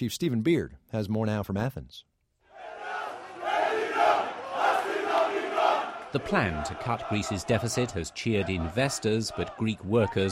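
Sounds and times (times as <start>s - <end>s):
speech: 0.0s - 2.1s, 6.1s - 10.2s
protesters in Athens chanting and shouting against austerity budget cuts: 2.5s - 10.2s.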